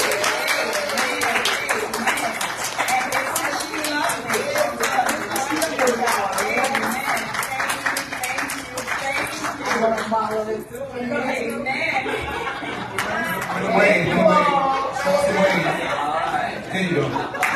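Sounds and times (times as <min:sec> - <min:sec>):
laughter: 0:00.0 - 0:03.2, 0:11.7 - 0:17.5
church congregation applauding a woman being honored: 0:00.0 - 0:10.4.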